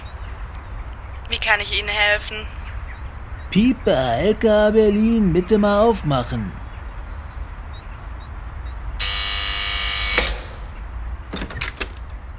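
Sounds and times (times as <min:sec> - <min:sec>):
speech: 0:01.4 - 0:02.6, 0:03.5 - 0:06.6
door buzzer buzzing: 0:09.0 - 0:10.8.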